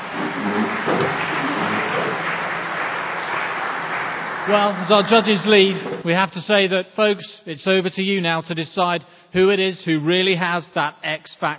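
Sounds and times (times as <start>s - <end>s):
audience applause: 0.0s - 6.1s
speech: 4.5s - 11.5s.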